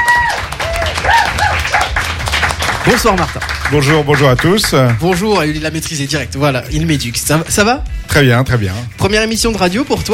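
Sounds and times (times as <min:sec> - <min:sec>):
audience applause: 0:00.0 - 0:05.3
speech: 0:02.9 - 0:10.1.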